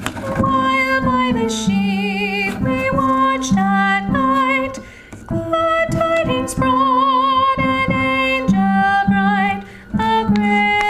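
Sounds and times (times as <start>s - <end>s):
tenor singing: 0.1s - 10.8s.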